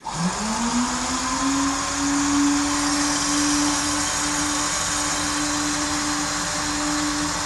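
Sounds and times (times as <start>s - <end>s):
P-51D aircraft coolant actuator: 0.1s - 7.4s.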